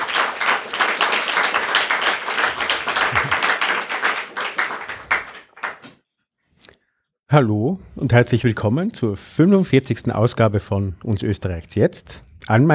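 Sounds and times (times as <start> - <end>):
audience applause: 0.0 - 6.0
speech: 7.3 - 12.7.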